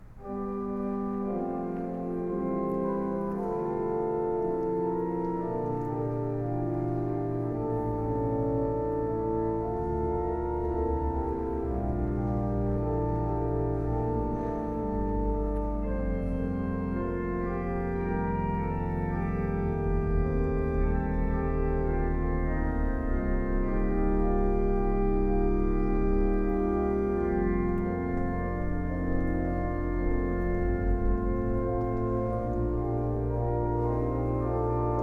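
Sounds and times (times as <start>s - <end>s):
organ interlude: 0.0s - 35.0s.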